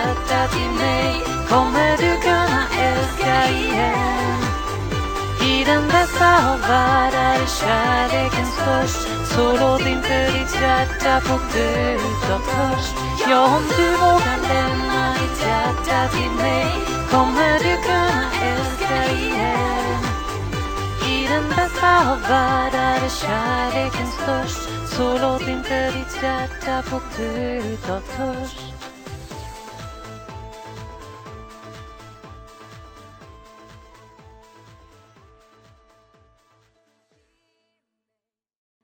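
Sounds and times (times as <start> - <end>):
tenor singing: 0.0 - 28.7.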